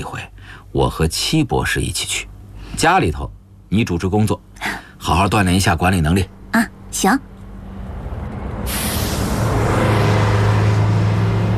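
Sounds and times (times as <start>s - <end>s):
speech: 0.0s - 7.3s
car speeding along a highway: 7.5s - 11.5s.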